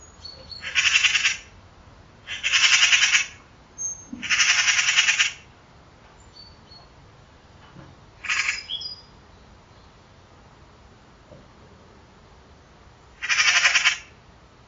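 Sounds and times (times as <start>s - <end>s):
harsh raspy pulsed bird calls: 0.0s - 1.6s, 2.2s - 5.5s, 8.2s - 9.0s, 13.2s - 14.2s.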